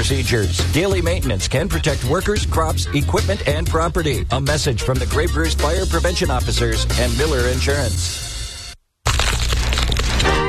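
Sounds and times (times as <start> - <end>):
speech: 0.0 - 8.3
crunch of biting crispy chicken wings: 9.0 - 10.4.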